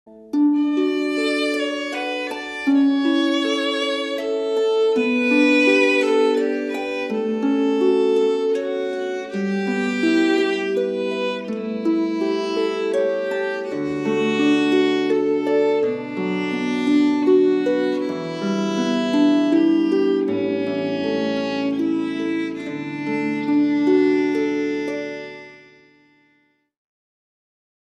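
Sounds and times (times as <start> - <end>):
waltz music: 0.1 - 26.5.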